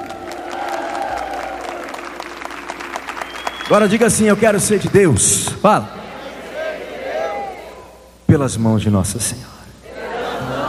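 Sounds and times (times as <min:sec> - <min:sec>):
audience applauding: 0:00.0 - 0:05.5
speech: 0:03.7 - 0:06.0, 0:08.3 - 0:09.5.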